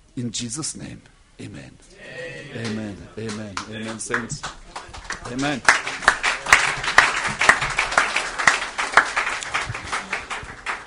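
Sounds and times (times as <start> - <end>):
speech: 0.2 - 4.6, 5.2 - 5.8
audience clapping: 2.6 - 10.8.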